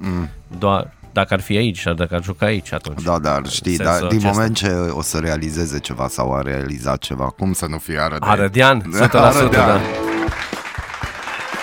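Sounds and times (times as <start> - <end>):
speech: 0.6 - 10.2
laughter: 9.0 - 10.3
applause: 9.0 - 11.6.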